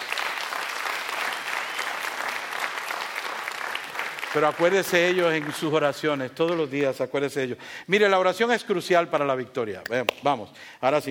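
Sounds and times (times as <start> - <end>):
audience applause: 0.0 - 4.4
speech: 4.4 - 11.0.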